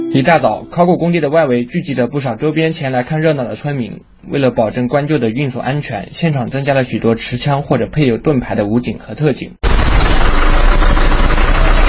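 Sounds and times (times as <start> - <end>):
speech: 0.1 - 10.1
heavy diesel engines of a crane and truck idling: 9.6 - 11.8.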